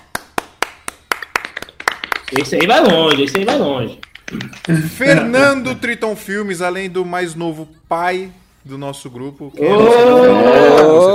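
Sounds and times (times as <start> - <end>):
hands clapping: 0.0 - 5.0
speech: 2.3 - 11.1.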